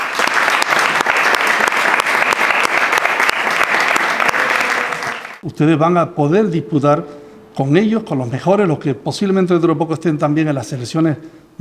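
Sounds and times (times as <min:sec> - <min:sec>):
audience applause: 0:00.0 - 0:05.4
speech: 0:05.5 - 0:11.5.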